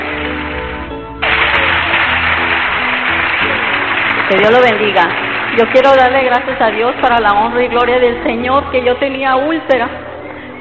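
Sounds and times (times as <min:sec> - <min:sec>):
loud applause: 0:01.2 - 0:07.1
speech: 0:04.3 - 0:10.0.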